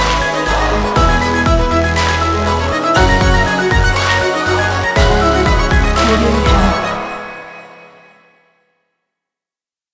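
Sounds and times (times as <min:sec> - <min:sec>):
dramatic sport intro action trailer music: 0:00.1 - 0:08.0.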